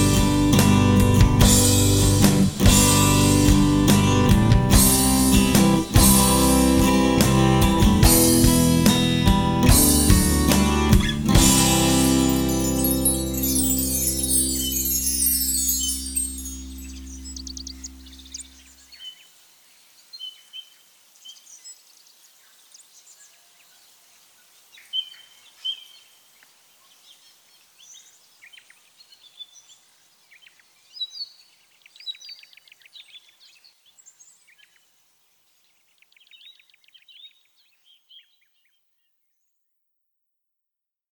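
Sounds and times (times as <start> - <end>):
ambient guitar melody: 0.0 - 18.6.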